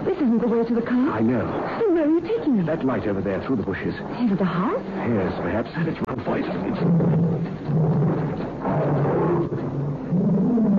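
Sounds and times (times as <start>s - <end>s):
speech: 0.4s - 8.0s
tiger roaring: 6.5s - 10.7s.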